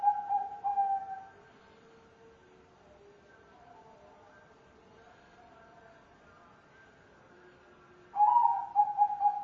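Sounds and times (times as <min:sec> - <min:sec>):
spotted dove cooing: 0:00.0 - 0:01.4, 0:08.2 - 0:09.4.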